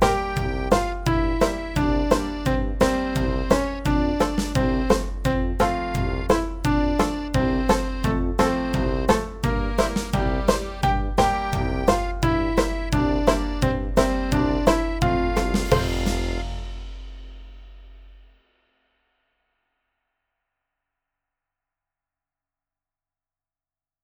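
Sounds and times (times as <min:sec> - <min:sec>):
backing track: 0:00.0 - 0:17.3.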